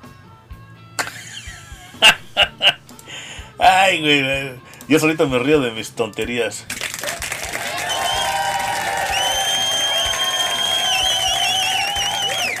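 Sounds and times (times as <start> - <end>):
laughter: 1.0 - 3.0
speech: 2.0 - 2.2, 3.8 - 6.8
audience applause: 6.7 - 12.5.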